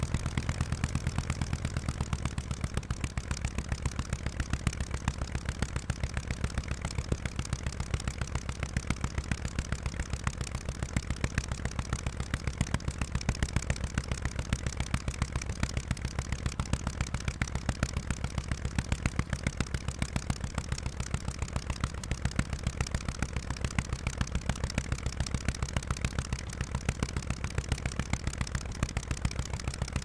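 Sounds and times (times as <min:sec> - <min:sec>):
Mitsubishi Zero aircraft engine starting on ground: 0:00.0 - 0:30.0.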